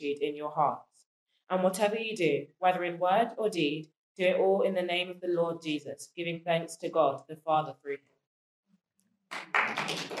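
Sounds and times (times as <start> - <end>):
speech: 0.0 - 8.1
crowd applause: 9.3 - 10.1.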